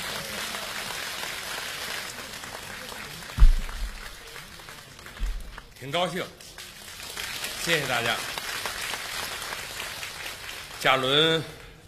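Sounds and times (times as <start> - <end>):
audience applause: 0.0 - 5.8, 6.6 - 11.7
speech: 5.8 - 6.5, 7.6 - 8.3, 10.8 - 11.6.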